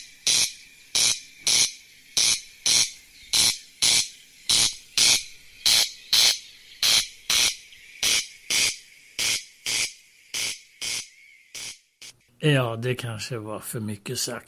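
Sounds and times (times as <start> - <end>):
corn crake calling: 0.0 - 12.2
speech: 12.4 - 14.4.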